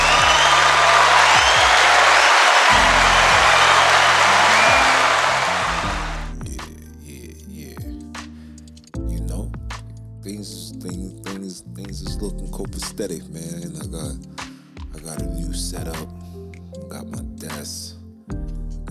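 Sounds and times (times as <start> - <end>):
crowd applause: 0.0 - 6.3.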